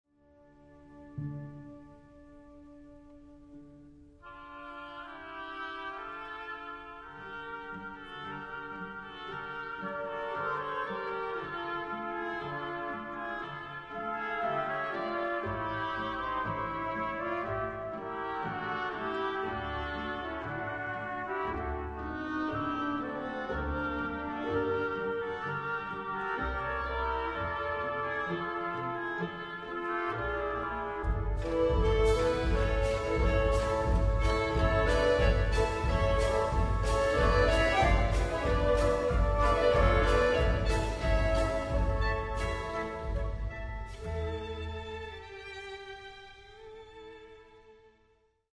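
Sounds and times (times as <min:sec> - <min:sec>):
orchestrina: 0:00.2 - 0:47.9.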